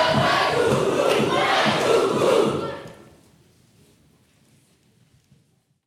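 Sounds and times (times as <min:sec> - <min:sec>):
people cheering: 0:00.1 - 0:03.0.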